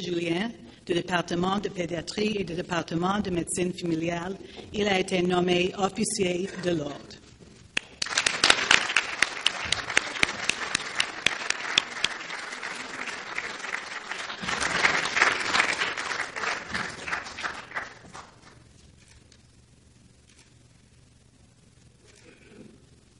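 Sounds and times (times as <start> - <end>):
speech: 0.0 - 7.2
audience applause: 7.8 - 18.6.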